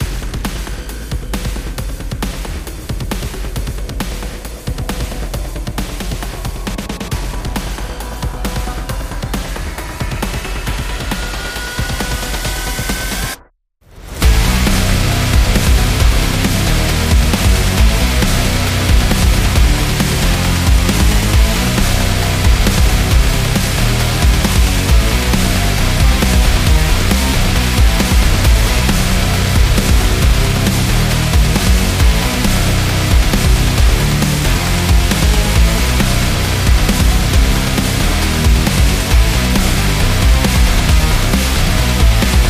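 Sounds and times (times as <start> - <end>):
sport and action music: 0.0 - 42.4.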